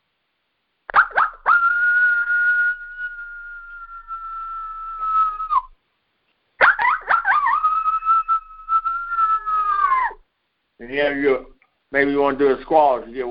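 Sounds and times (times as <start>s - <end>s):
coyote howl made with a game call: 0.9s - 5.8s, 6.6s - 10.2s
speech: 10.9s - 13.2s.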